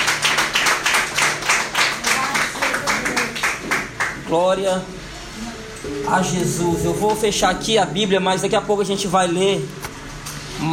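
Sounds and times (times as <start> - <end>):
audience clapping: 0.0 - 4.3
speech: 4.3 - 9.8, 10.6 - 10.7.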